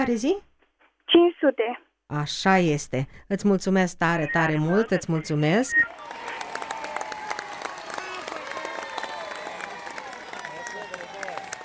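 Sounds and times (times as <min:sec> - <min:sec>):
speech: 0:00.0 - 0:00.5, 0:01.1 - 0:06.4
audience applause: 0:05.8 - 0:11.6.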